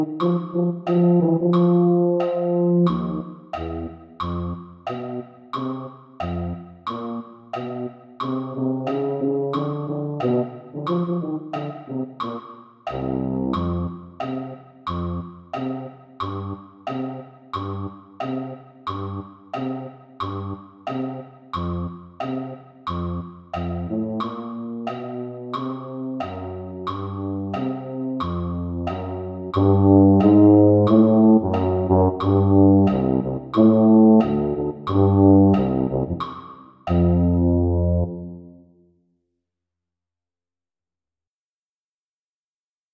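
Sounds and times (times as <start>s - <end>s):
tuba: 0.0s - 15.3s, 22.9s - 38.7s.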